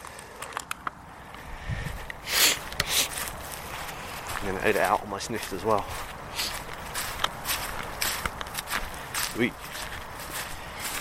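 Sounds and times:
footsteps stomping: 2.7s - 10.9s
speech: 4.4s - 6.5s, 9.4s - 9.7s.

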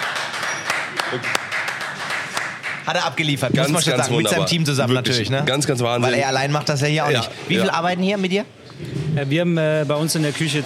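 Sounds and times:
people clapping to send off a friend: 0.0s - 4.1s
speech: 1.1s - 1.4s, 2.9s - 10.6s.

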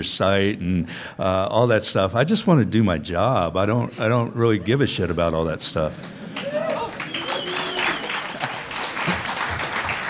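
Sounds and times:
speech: 0.0s - 6.2s
audience clapping: 6.0s - 10.0s
people cheering: 6.3s - 10.0s
whistles: 7.0s - 8.5s.

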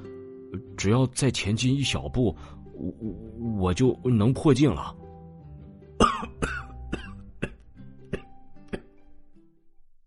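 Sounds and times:
speech: 0.8s - 5.0s
person coughing: 6.0s - 8.9s.

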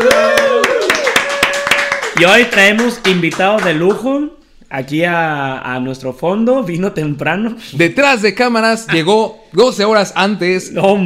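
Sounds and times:
hand claps: 0.0s - 4.1s
speech: 2.2s - 11.0s.

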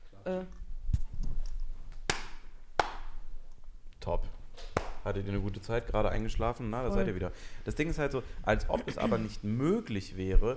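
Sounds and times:
speech: 0.2s - 0.6s, 4.1s - 4.4s, 5.0s - 10.5s
sharp hand claps: 2.0s - 3.2s, 4.7s - 5.0s.

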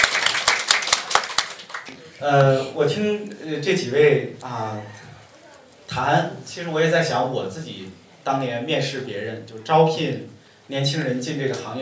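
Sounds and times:
people clapping: 0.0s - 2.2s
speech: 2.2s - 5.0s, 5.9s - 11.7s.

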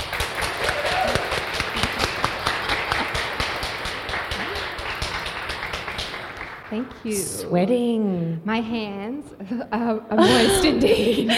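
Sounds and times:
audience applause welcoming a speaker at an Offline event: 0.0s - 7.1s
speech: 6.7s - 11.3s.

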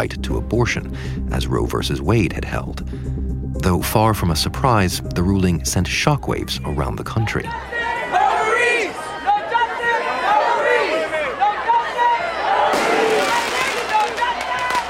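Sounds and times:
speech: 0.0s - 8.0s
crowd shouting: 7.3s - 14.8s.

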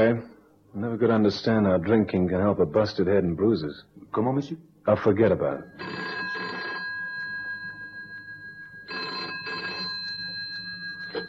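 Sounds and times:
speech: 0.0s - 6.1s
telephone bell ringing: 5.6s - 11.2s.

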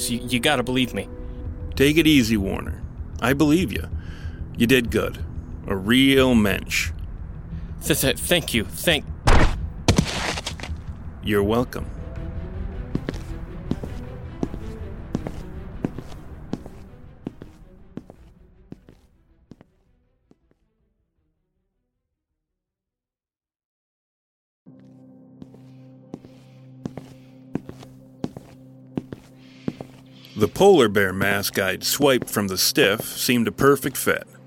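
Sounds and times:
speech: 0.0s - 1.2s, 1.8s - 4.0s, 4.6s - 7.0s, 7.8s - 9.1s, 11.2s - 12.0s, 30.4s - 34.4s
footsteps walking at an even pace: 9.4s - 10.9s, 12.8s - 20.6s, 24.8s - 30.6s, 31.2s - 32.4s.

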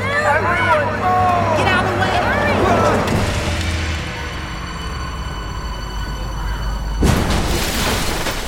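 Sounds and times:
bus engine droning with a whining hum: 0.0s - 7.1s
speech: 0.2s - 1.3s
bus crashing into the water with a loud splash: 7.0s - 8.4s.

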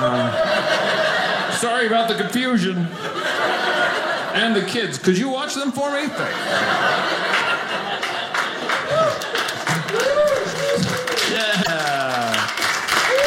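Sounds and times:
laughter: 0.0s - 2.2s, 2.9s - 4.7s, 6.0s - 10.1s
speech: 1.7s - 3.5s, 4.4s - 7.9s
audience applause: 6.9s - 13.2s
excited voices: 8.8s - 12.4s.

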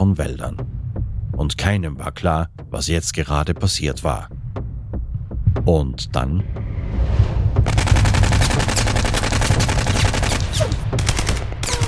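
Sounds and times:
speech: 0.0s - 0.7s, 1.4s - 4.4s, 5.5s - 7.9s
machine gun firing: 7.7s - 11.8s.

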